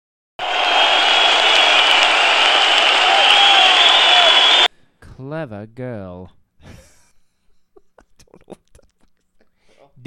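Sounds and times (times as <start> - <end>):
crowd cheering: 0.4 - 4.7
speech: 5.3 - 6.8, 8.4 - 8.6.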